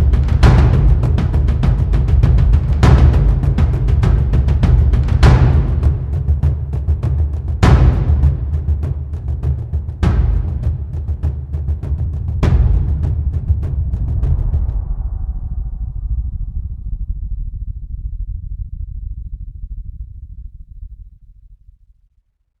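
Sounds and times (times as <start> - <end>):
drum: 0.0 - 17.0.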